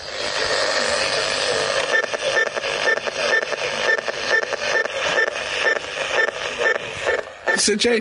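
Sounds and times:
radio hiss and static: 0.0s - 7.9s
radio beeping from remote control interference: 1.9s - 7.8s.

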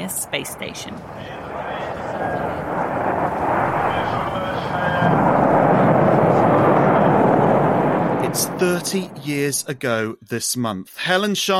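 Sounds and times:
speech: 0.0s - 2.9s, 8.4s - 11.5s
rocket launch roar carrying the UK's first astronaut to Mir: 0.1s - 10.0s.

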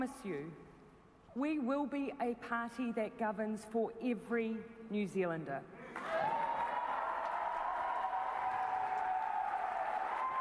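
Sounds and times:
speech: 0.0s - 6.1s
crowd cheering at speech: 6.0s - 10.3s.

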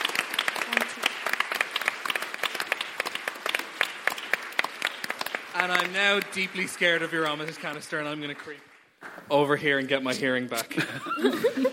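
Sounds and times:
audience applause: 0.0s - 9.0s
speech: 5.6s - 8.7s, 9.3s - 11.7s
laughter: 10.2s - 11.7s.

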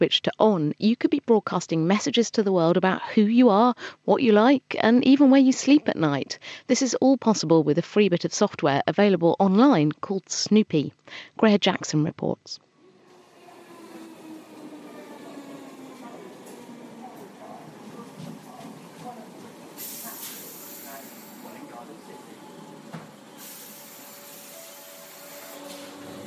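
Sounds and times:
speech: 0.0s - 12.6s
interior of a moving train to London: 12.9s - 26.2s.

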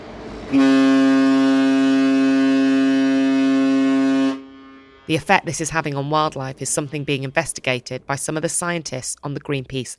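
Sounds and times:
speech: 0.5s - 0.9s, 5.1s - 9.9s
loud ship horn from international shipping traffic in Antarctica: 0.5s - 5.1s.

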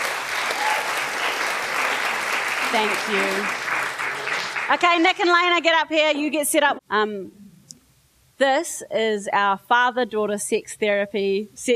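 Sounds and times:
audience applause: 0.0s - 5.0s
speech: 2.7s - 3.6s, 4.7s - 7.4s, 8.4s - 11.7s.

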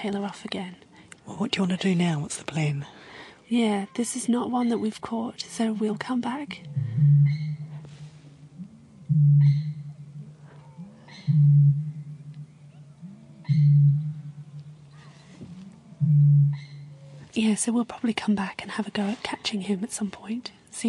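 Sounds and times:
speech: 0.0s - 7.4s, 9.2s - 9.7s, 11.3s - 11.8s, 13.5s - 14.0s, 16.1s - 16.6s, 17.4s - 20.8s
faint bird calls: 6.5s - 17.4s
Australasian bittern booming: 6.6s - 10.6s, 11.2s - 15.0s, 16.0s - 17.0s.

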